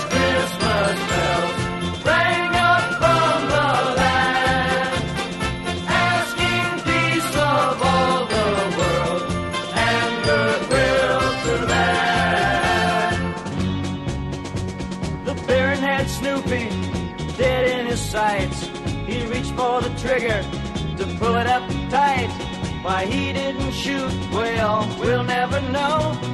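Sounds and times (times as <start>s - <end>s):
Christmas bells jingling: 0.0s - 4.8s, 5.6s - 13.5s
loud, full musical arrangement: 0.0s - 26.3s
speech: 21.2s - 26.3s.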